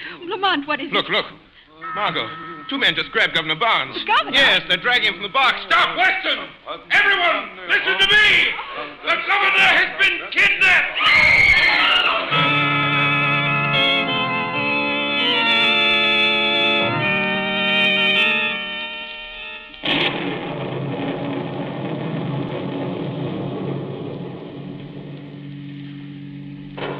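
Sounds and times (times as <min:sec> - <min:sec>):
speech: 0:00.4 - 0:12.5
sustained musical tones: 0:01.7 - 0:05.6, 0:12.3 - 0:19.9
low rumbling thunder: 0:19.8 - 0:26.4
loud steady roar of rain: 0:19.8 - 0:26.9
sudden crash: 0:19.8 - 0:26.9.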